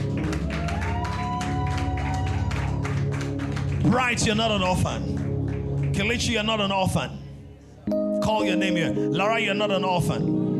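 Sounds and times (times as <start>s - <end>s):
audience clapping hands: 0.0s - 6.7s
speech: 3.8s - 5.1s, 6.0s - 7.2s, 7.9s - 10.4s.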